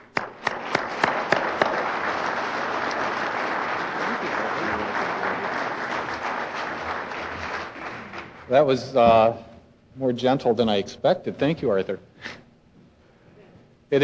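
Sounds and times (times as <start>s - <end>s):
audience clapping to welcome a speaker at a lecture: 0.0s - 8.9s
speech: 8.5s - 12.1s.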